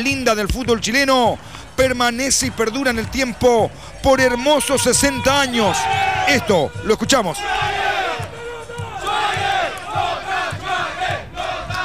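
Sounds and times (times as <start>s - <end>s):
speech: 0.0s - 7.8s
low drum-like thumps: 0.0s - 11.8s
football crowd chanting the team's name at a Chilean club match in Lota: 0.8s - 11.8s
vuvuzelas blowing: 3.7s - 9.9s.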